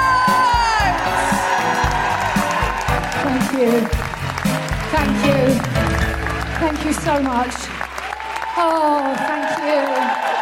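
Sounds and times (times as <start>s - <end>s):
audience clapping and cheering at a live comedy show: 0.0s - 10.4s
speech: 3.6s - 4.0s, 4.9s - 5.7s, 6.6s - 7.8s, 8.6s - 10.3s.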